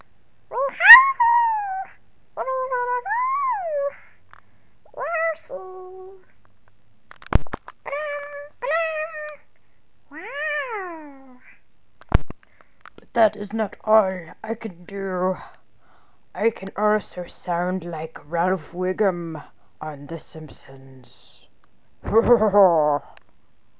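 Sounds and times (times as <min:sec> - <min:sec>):
voice imitating Yoshi with high squeaky chirps: 0:00.5 - 0:04.2, 0:04.9 - 0:06.2, 0:07.8 - 0:09.5, 0:10.1 - 0:11.6
speech: 0:13.2 - 0:15.6, 0:16.4 - 0:21.4, 0:22.1 - 0:23.1.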